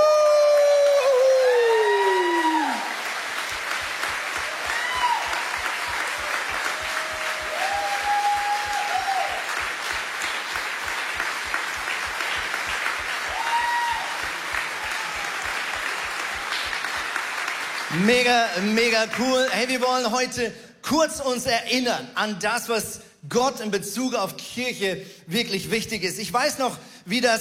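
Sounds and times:
crowd whooping and cheering: 0.0 - 17.1
crowd applauding: 0.0 - 19.9
rhythmic clapping: 2.8 - 20.0
speech: 18.2 - 27.3.

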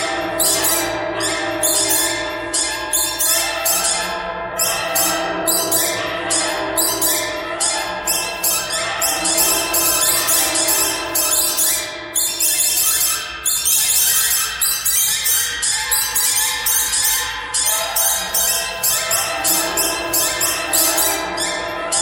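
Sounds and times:
birds chirping in a pentatonic pattern: 0.0 - 22.0.

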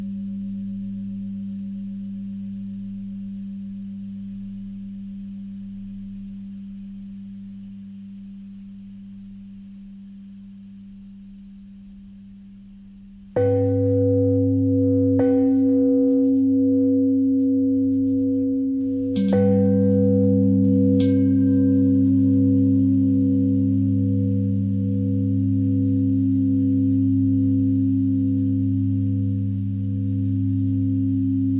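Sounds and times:
pentatonic bell melody: 13.4 - 31.5.

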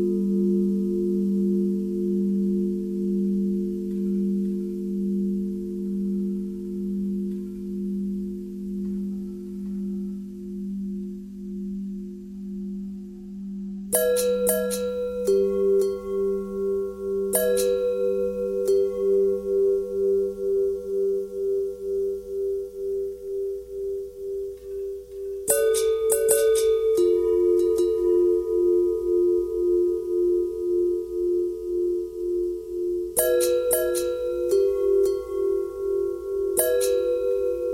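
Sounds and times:
long bell thread noise: 0.0 - 37.7.

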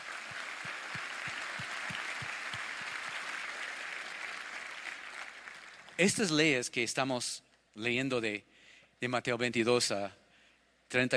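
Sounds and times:
audience applause: 0.0 - 6.0
speech: 6.0 - 10.2, 10.9 - 11.1.

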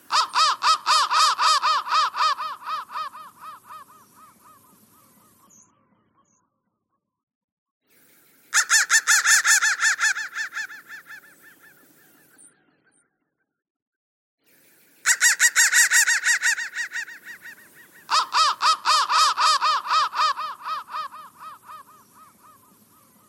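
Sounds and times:
crow calling harshly: 0.0 - 5.2, 8.5 - 11.7, 15.0 - 23.2.

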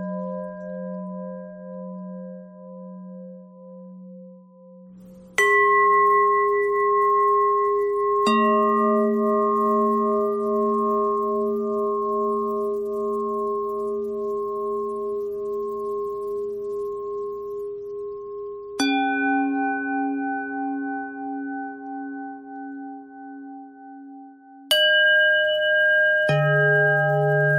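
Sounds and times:
pentatonic bell melody: 5.1 - 22.8, 24.7 - 27.5.

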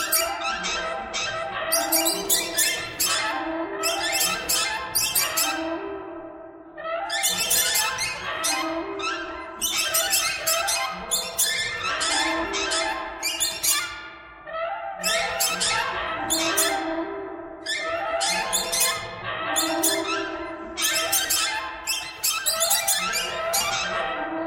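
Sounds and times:
many birds calling: 0.0 - 5.9, 6.8 - 24.4.

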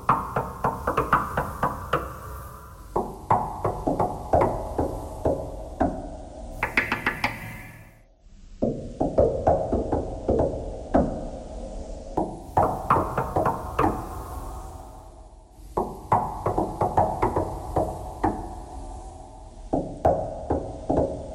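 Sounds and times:
knocking thread noise: 0.0 - 6.0, 6.6 - 7.9, 8.6 - 11.2, 12.2 - 14.4, 15.6 - 18.9, 19.7 - 21.3.

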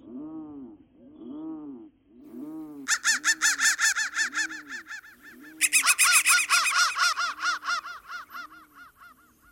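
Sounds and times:
crow cawing: 2.8 - 9.4.

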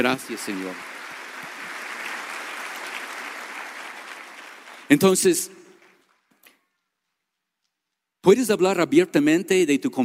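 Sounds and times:
speech: 0.0 - 0.9, 4.9 - 5.6, 8.2 - 10.0
audience applause: 0.0 - 6.1.

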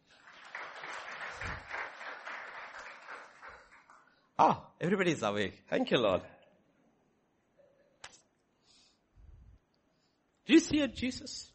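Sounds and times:
crowd clapping: 0.0 - 4.2
speech: 4.4 - 6.4, 10.7 - 11.5.

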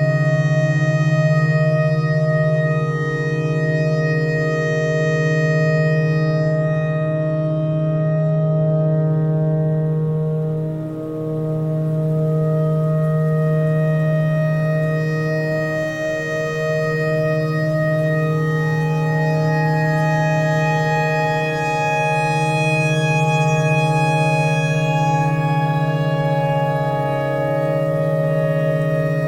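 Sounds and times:
tornado siren: 0.0 - 8.0, 8.8 - 29.2
clarinet notes: 10.7 - 29.2.

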